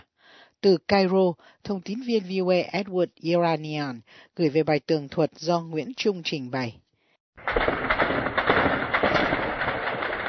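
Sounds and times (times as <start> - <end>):
speech: 0.6 - 6.8
artillery and mortar shelling by Syrian government forces in Homs: 7.4 - 10.2.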